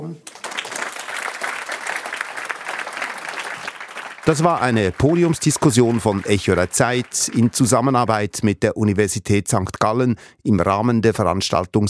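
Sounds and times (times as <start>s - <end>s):
audience applause: 0.2s - 8.2s
speech: 4.2s - 11.8s.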